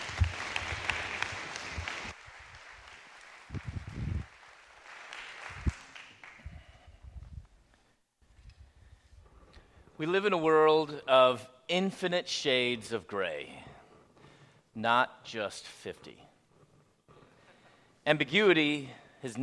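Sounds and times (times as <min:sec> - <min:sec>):
audience applause welcoming a speaker to the stage at a morning gathering: 0:00.0 - 0:06.6
speech: 0:10.0 - 0:13.7, 0:14.8 - 0:16.3, 0:18.1 - 0:19.4.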